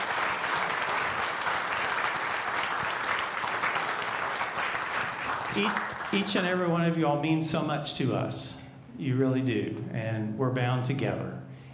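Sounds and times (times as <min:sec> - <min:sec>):
audience applause: 0:00.0 - 0:06.6
speech: 0:05.6 - 0:11.4.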